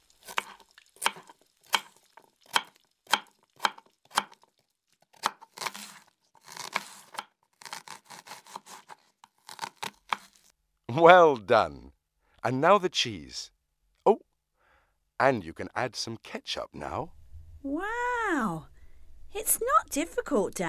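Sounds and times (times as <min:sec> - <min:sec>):
rustling and tearing: 0:00.0 - 0:10.5
knife chopping tomato, lettuce and onion on a board for a hamburger: 0:00.3 - 0:04.4, 0:05.2 - 0:10.4
speech: 0:11.0 - 0:11.8, 0:12.4 - 0:14.2, 0:15.2 - 0:18.7, 0:19.3 - 0:20.6.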